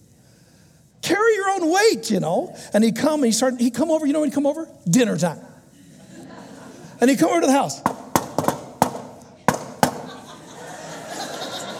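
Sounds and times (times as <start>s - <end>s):
speech: 1.5s - 5.5s, 7.0s - 8.0s
laughter: 5.6s - 7.4s, 9.2s - 11.7s
knocking on a door: 7.8s - 10.1s.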